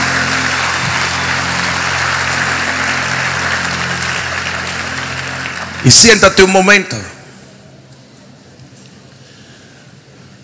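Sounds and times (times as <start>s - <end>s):
audience applause: 0.0s - 6.5s
speech: 5.8s - 7.2s.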